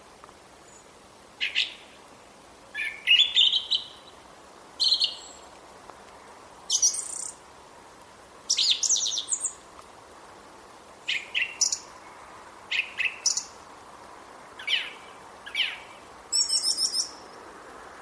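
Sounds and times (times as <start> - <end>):
song thrush singing: 0.6 - 2.0, 2.7 - 7.5, 8.5 - 9.8, 11.0 - 13.7, 14.6 - 17.5.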